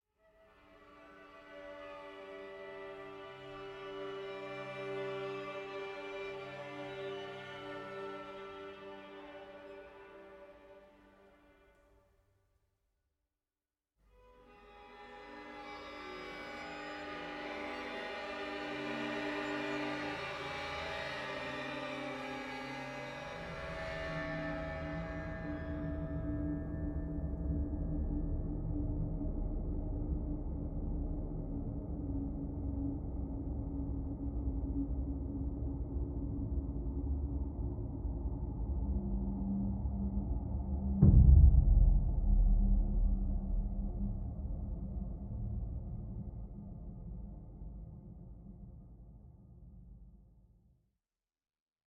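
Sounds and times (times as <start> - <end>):
ambient music: 0.3 - 11.9, 14.1 - 48.2.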